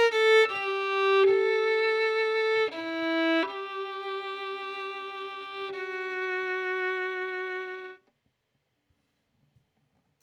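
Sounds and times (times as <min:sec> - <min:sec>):
violin: 0:00.0 - 0:08.1.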